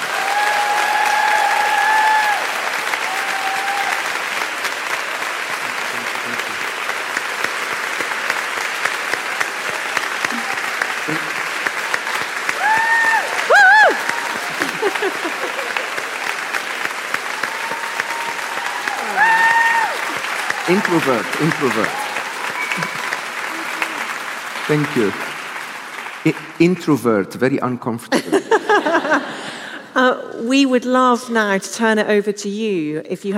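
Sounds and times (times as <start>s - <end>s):
whistles and cheers: 0.0s - 4.2s, 12.0s - 14.8s, 17.3s - 24.1s
crowd applauding: 0.0s - 27.5s
laughter: 10.3s - 11.6s, 13.5s - 16.4s, 22.6s - 24.8s, 28.1s - 29.9s
speech: 20.9s - 22.0s, 24.7s - 25.3s, 26.2s - 29.3s, 30.0s - 33.3s.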